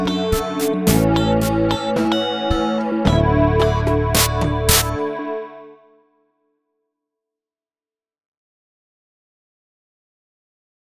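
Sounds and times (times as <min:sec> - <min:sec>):
freeform MIDI music: 0:00.0 - 0:05.8.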